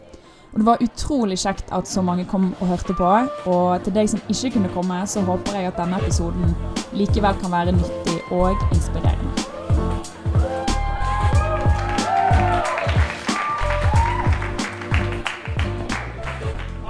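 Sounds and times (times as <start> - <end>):
speech: 0.5 - 9.5
audience applause: 10.8 - 16.7.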